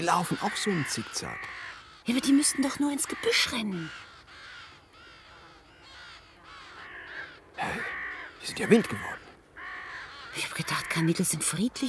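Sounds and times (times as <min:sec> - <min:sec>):
speech: 0:00.0 - 0:04.1, 0:08.4 - 0:09.2, 0:10.4 - 0:11.8
crows cawing while attacking and pecking: 0:00.0 - 0:11.8.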